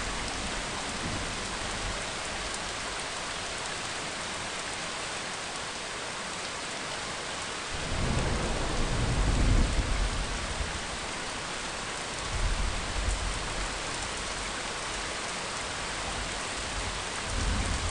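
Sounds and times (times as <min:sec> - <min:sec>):
rain: 0:00.0 - 0:17.8
thunder: 0:07.8 - 0:10.3.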